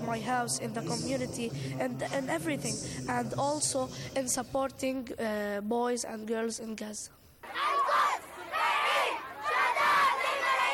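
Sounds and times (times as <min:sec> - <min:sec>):
speech: 0:00.1 - 0:07.6
protest crowd chanting: 0:07.4 - 0:10.7.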